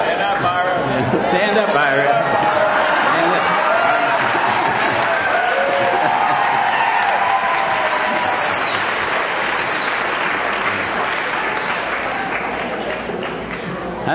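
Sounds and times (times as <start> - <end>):
audience applauding: 0.2 - 14.0
laughter: 0.3 - 8.8.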